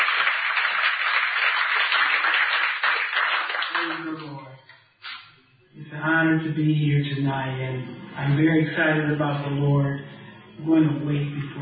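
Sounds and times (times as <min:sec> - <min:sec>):
audience clapping: 0:00.0 - 0:04.5
speech: 0:05.9 - 0:10.0, 0:10.6 - 0:11.5.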